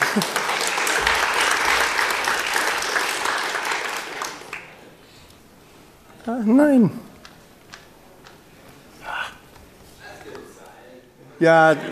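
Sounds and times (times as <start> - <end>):
audience applause: 0.0 - 5.0
speech: 0.2 - 0.4, 6.3 - 7.1, 11.4 - 11.9.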